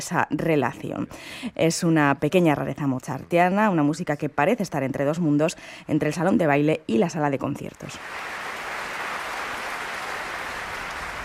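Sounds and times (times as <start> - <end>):
speech: 0.0 - 8.4
concert audience applauding the orchestra: 8.0 - 11.2.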